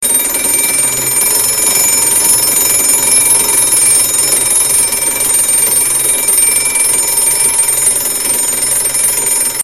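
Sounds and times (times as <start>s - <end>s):
alarm: 0.0s - 9.6s.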